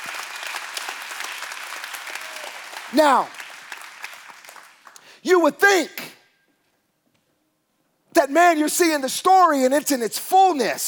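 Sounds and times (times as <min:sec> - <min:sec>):
audience clapping: 0:00.0 - 0:05.2
speech: 0:02.9 - 0:03.4, 0:05.2 - 0:06.1, 0:08.2 - 0:10.8.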